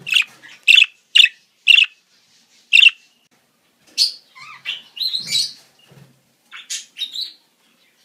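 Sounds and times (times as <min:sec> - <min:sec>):
budgerigar chatter: 0:00.1 - 0:01.9, 0:02.8 - 0:03.0.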